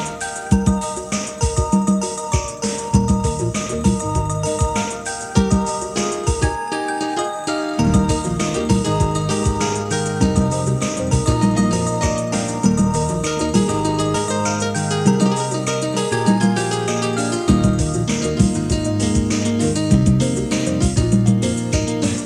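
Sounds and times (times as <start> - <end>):
piano ditty: 0.0 - 22.2.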